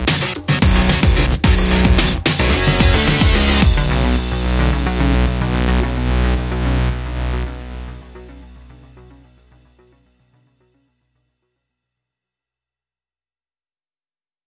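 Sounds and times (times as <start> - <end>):
rhythm: 0.0 - 7.6.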